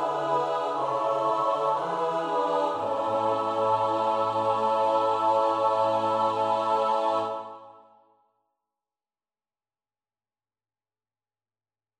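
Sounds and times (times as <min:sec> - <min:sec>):
SATB choir part practice: 0:00.0 - 0:08.0.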